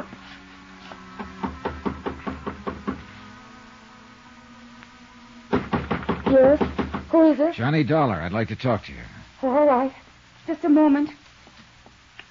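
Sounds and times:
faint steady hum: 0.0s - 12.3s
firm knocks on a wooden apartment door: 1.2s - 3.1s, 5.5s - 7.1s
speech: 6.3s - 11.2s.

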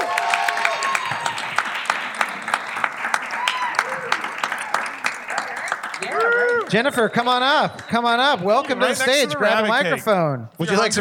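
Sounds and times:
audience applause at a live show at the Bell House in Brooklyn, New York: 0.0s - 9.3s
speech: 6.7s - 10.9s.

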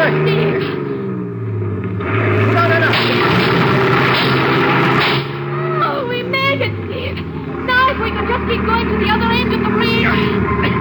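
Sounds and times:
voices: 0.0s - 1.1s, 2.2s - 10.7s
car engine accelerating toward a bridge barricade: 0.0s - 10.7s.

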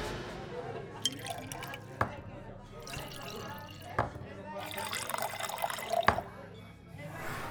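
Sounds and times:
faint murmuring voices: 0.2s - 7.5s
drinks being poured into glasses: 1.0s - 2.2s, 2.8s - 6.3s.

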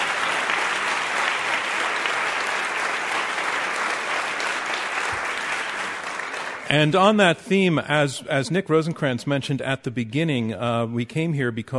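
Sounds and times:
audience applause: 0.0s - 7.0s
speech: 6.7s - 11.7s.

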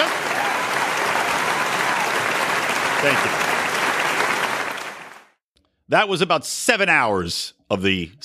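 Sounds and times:
audience clapping: 0.0s - 5.4s
speech: 3.0s - 3.5s, 5.9s - 8.2s.

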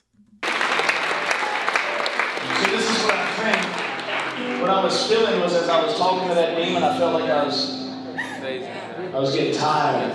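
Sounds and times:
crowd clapping: 0.4s - 5.9s
speech: 4.8s - 7.8s, 8.4s - 10.1s.

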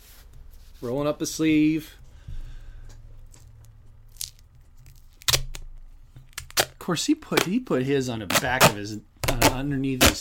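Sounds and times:
speech: 0.8s - 2.0s, 6.9s - 10.1s
tape ripping off a roll: 4.1s - 6.8s, 8.3s - 10.1s.

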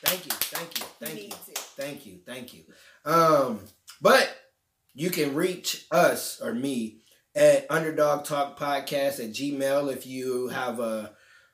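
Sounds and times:
round of applause: 0.0s - 1.9s
speech: 1.9s - 4.3s, 5.0s - 11.2s.

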